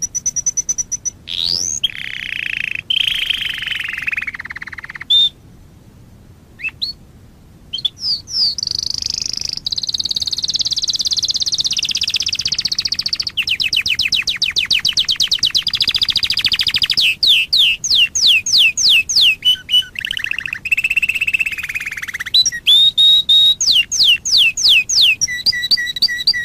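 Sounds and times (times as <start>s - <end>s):
Waterslager canary singing a high pulsed trill: 0.0s - 5.4s, 7.7s - 26.4s.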